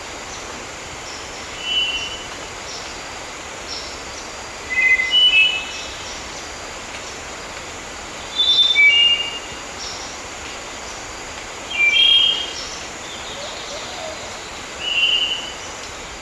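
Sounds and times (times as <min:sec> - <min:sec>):
faint high insect drone: 0:00.0 - 0:16.2
Spotted Nightingale-Thrush singing fluty phrases: 0:03.6 - 0:06.4, 0:08.2 - 0:10.4, 0:11.6 - 0:16.0.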